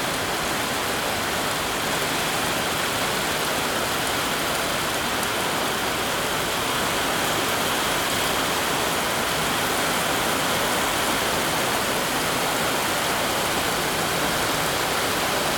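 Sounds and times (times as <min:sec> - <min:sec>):
torrential rain in a town: 0:00.0 - 0:15.5.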